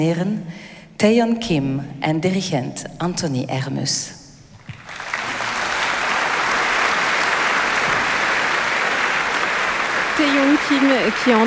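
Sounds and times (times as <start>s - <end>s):
speech: 0.0s - 4.2s, 10.7s - 11.4s
concert audience applause: 4.7s - 11.4s.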